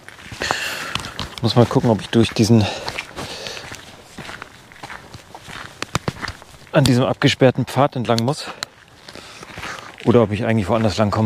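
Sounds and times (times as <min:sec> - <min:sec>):
hiker's footsteps walking back along a trail beside a moor: 0:00.0 - 0:11.2
speech: 0:01.4 - 0:02.9, 0:06.8 - 0:08.6, 0:10.1 - 0:11.2.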